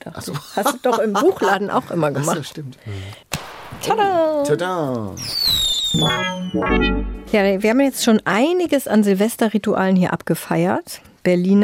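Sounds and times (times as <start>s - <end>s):
speech: 0.0s - 11.6s
laughter: 0.2s - 2.0s
party popper going off: 3.3s - 4.1s, 5.2s - 7.3s.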